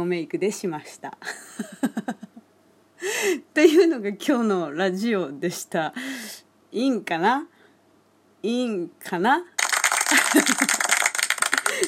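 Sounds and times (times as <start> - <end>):
speech: 0.0 - 2.3, 3.0 - 7.5, 8.4 - 9.5
applause sound effect: 9.6 - 11.8
laughter: 10.1 - 11.8.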